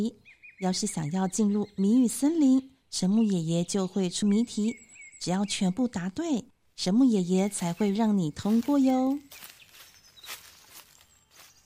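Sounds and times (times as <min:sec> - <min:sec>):
speech: 0:00.0 - 0:09.5
faint footsteps: 0:07.4 - 0:11.6.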